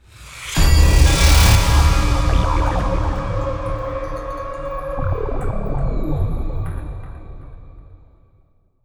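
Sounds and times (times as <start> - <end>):
round end sound: 0.5 - 6.7.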